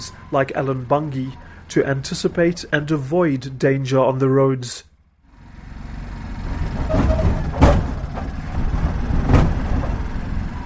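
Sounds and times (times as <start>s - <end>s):
tuk tuk engine droning: 0.0s - 4.0s, 4.9s - 10.6s
speech: 0.0s - 4.9s
tuk tuk body rattling and clanking over uneven road: 5.8s - 10.6s.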